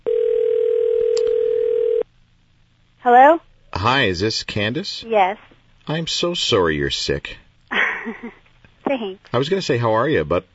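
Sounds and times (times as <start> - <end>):
telephone ringback tone while calling a guest: 0.0 - 2.0
speech: 3.1 - 7.4, 9.0 - 10.5.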